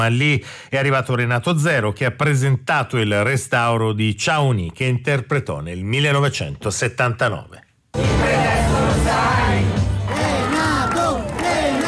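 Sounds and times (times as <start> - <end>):
speech: 0.0 - 8.2
large crowd chanting in unison: 8.0 - 11.8.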